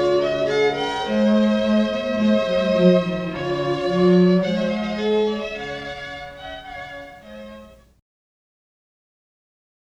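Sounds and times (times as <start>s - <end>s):
strings: 0.0s - 7.9s.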